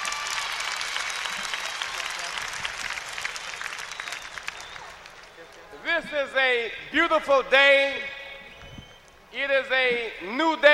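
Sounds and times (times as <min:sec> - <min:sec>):
audience applause: 0:00.0 - 0:05.8
speech: 0:06.0 - 0:08.1, 0:09.3 - 0:10.7.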